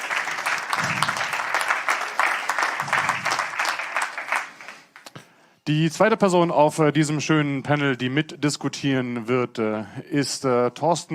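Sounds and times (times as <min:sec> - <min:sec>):
audience applause: 0:00.0 - 0:05.1
speech: 0:05.7 - 0:11.1.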